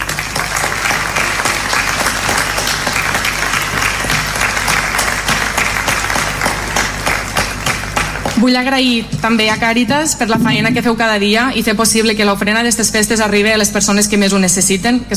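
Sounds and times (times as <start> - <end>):
audience applause: 0.0 - 8.4
speech: 8.4 - 15.1.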